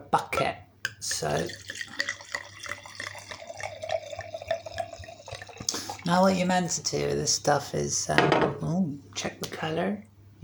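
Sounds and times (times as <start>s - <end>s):
speech: 0.1s - 1.8s, 6.1s - 10.4s
red wine pouring into glass: 0.9s - 7.5s.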